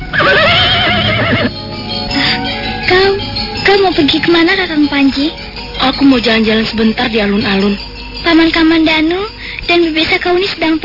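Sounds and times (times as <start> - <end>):
horse neighing: 0.0 - 2.8
speech: 3.8 - 10.8.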